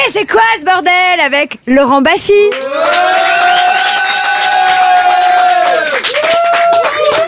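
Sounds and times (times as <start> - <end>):
speech: 0.1 - 3.4
crowd cheering: 2.5 - 7.2.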